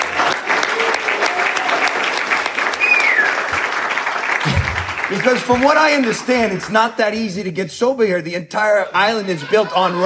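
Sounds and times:
audience applause: 0.0 - 6.7
speech: 5.1 - 10.0.

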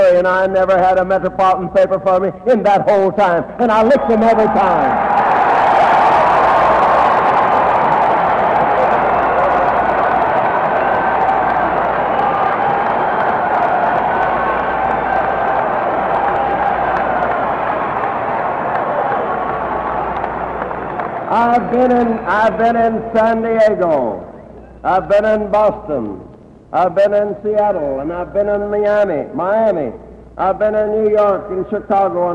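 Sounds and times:
speech: 0.2 - 5.1, 21.8 - 24.2, 24.8 - 32.3
crowd applauding at rally: 3.7 - 22.9.

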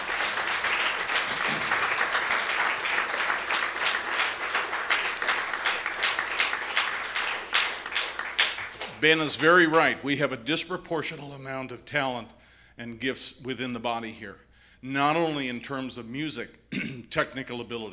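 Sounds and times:
audience applause: 0.0 - 9.0
speech: 9.0 - 17.9.

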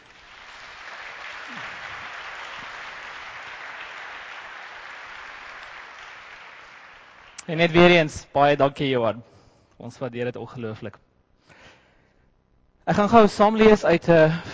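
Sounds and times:
crowd clapping: 0.0 - 8.0
speech: 7.5 - 11.0, 12.8 - 14.5.

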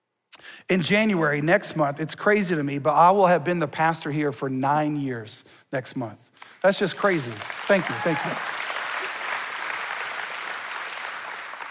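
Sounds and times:
speech: 0.7 - 8.6
audience clapping: 6.4 - 11.6.

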